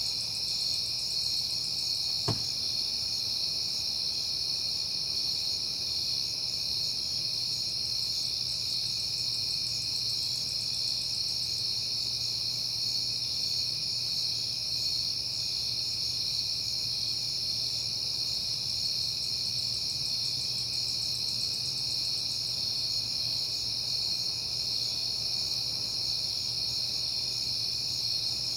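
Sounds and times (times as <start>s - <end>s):
crickets trilling: 0.0s - 28.5s.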